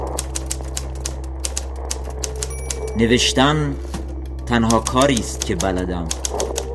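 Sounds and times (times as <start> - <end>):
typewriter keys typing: 0.0 - 3.0, 4.6 - 6.7
speech: 3.0 - 3.9, 4.5 - 6.2.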